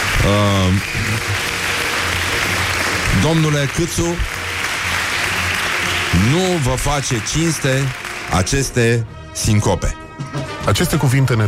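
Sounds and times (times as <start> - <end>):
audience applause: 0.0 - 8.8
speech: 0.2 - 1.8, 3.2 - 4.4, 6.1 - 11.4.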